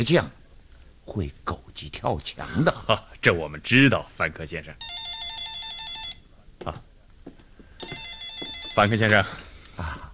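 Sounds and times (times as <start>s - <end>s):
speech: 0.0s - 0.4s, 1.1s - 5.0s, 6.6s - 6.9s, 8.8s - 10.1s
telephone ringing: 4.8s - 6.3s, 7.8s - 9.4s.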